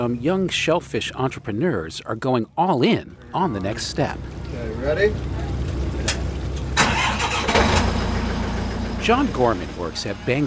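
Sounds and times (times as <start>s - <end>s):
speech: 0.0s - 5.4s, 9.0s - 10.4s
high-pressure scallop washer motor starting up and rumbling: 4.2s - 10.4s.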